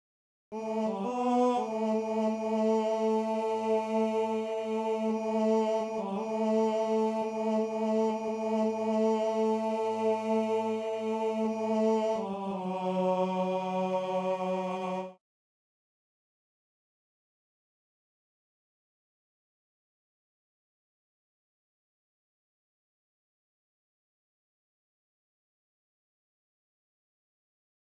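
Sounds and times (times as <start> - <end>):
tenor singing: 0.6 - 15.2.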